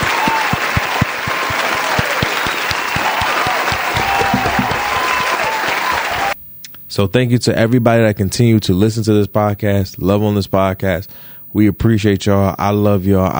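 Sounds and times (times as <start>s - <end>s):
hand clapping applause: 0.0s - 6.4s
speech: 7.0s - 13.3s.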